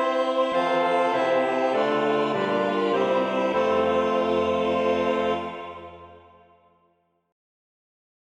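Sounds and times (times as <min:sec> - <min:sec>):
multi-instrument music: 0:00.0 - 0:06.4.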